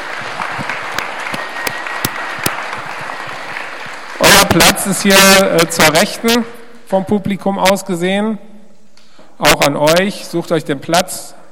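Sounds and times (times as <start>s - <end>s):
audience applause: 0.0s - 5.1s
speech: 4.5s - 8.5s, 9.4s - 11.4s.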